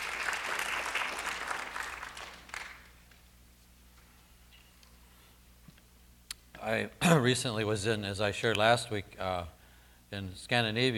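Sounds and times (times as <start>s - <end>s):
audience clapping: 0.0s - 3.2s
speech: 6.7s - 10.9s.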